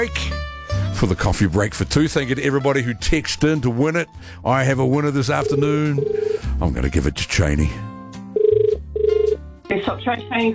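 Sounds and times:
speech: 0.0 - 0.3, 1.0 - 7.9, 9.9 - 10.5
warbling electronic telephone ring tone: 5.4 - 6.4, 8.4 - 9.4.

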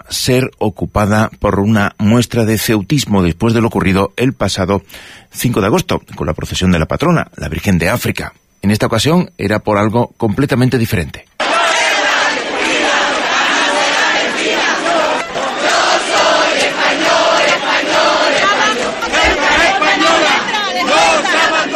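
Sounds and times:
speech: 0.1 - 11.3
huge crowd shouting and cheering in the street: 11.4 - 21.7.

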